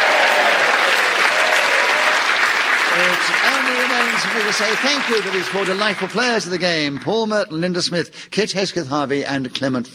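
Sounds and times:
audience applause: 0.0s - 7.3s
speech: 3.4s - 9.9s.

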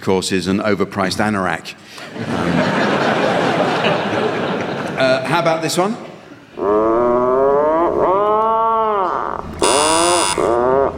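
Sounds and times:
speech: 0.0s - 3.2s, 3.8s - 7.0s
laughter: 2.0s - 5.3s
Atlantic puffin call: 6.6s - 10.9s.

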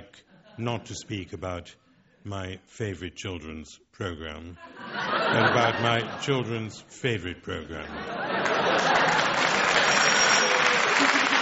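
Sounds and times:
speech: 0.1s - 10.0s
laughter: 4.6s - 6.9s, 7.5s - 11.4s
audience applause: 8.2s - 11.4s.

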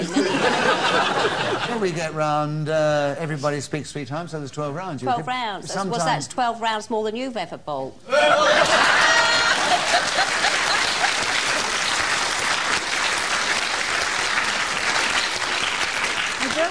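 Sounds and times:
laughter: 0.0s - 2.0s, 8.1s - 11.8s
speech: 1.7s - 9.1s
crowd applauding: 8.4s - 16.6s.

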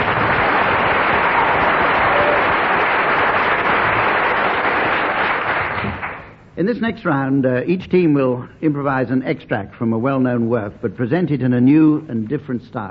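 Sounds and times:
crowd applauding: 0.0s - 6.3s
speech: 6.6s - 12.8s.

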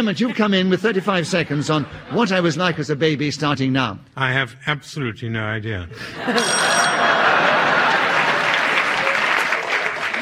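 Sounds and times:
laughter: 0.0s - 3.4s, 5.9s - 10.1s
speech: 0.0s - 7.0s
audience applause: 7.1s - 10.1s.

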